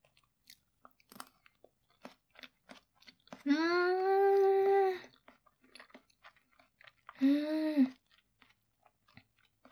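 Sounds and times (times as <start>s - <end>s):
crunchy chewing while eating a dish with a rich sauce: 0.0s - 3.6s, 5.0s - 7.2s, 7.9s - 9.7s
person humming in enjoyment: 3.5s - 5.0s, 7.2s - 7.9s.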